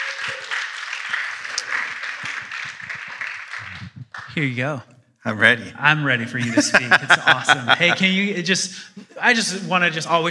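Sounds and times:
audience applause: 0.0s - 4.5s
laughter: 1.4s - 4.3s, 6.2s - 10.2s
speech: 4.4s - 10.2s.

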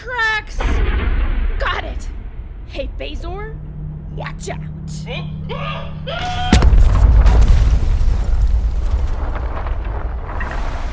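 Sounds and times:
rumbling crackling decay after a spaceship crash: 0.5s - 10.9s
radio-drama spaceship crashing into an asteroid cluster: 0.6s - 10.9s
rising electronic tones in a radio drama: 2.1s - 7.8s
speech: 2.8s - 6.8s.

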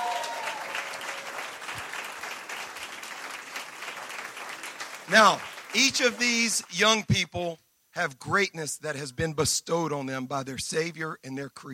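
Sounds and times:
audience applause: 0.0s - 6.6s
speech: 5.1s - 11.7s.

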